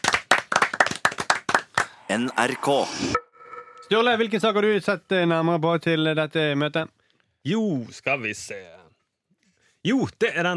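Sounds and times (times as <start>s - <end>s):
audience applause: 0.0s - 2.0s
speech: 2.1s - 3.2s, 3.9s - 8.8s, 9.8s - 10.5s.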